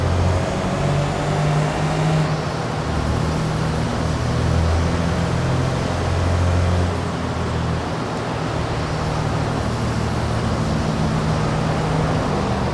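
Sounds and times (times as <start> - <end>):
Renault Laguna car: 0.0 - 12.7.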